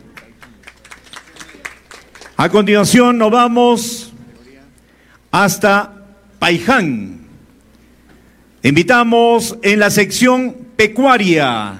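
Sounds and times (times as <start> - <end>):
audience applause: 0.0 - 2.5
speech: 2.4 - 4.0, 5.4 - 7.2, 8.6 - 11.7.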